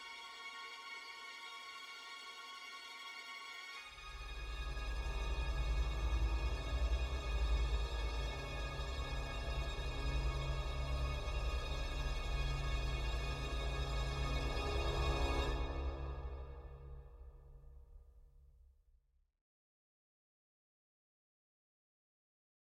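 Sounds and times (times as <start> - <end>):
string instrument: 0.0 - 18.1.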